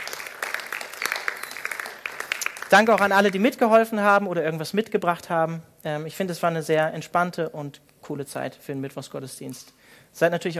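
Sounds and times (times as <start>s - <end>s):
audience applause: 0.0s - 3.4s
speech: 2.7s - 10.5s.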